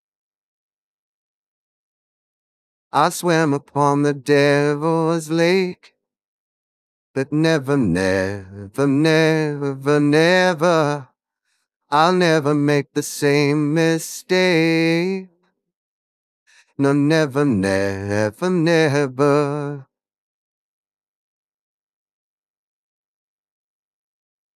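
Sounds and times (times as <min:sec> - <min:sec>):
voice: 0:03.0 - 0:05.9, 0:07.2 - 0:11.0, 0:12.0 - 0:14.2, 0:16.8 - 0:19.4.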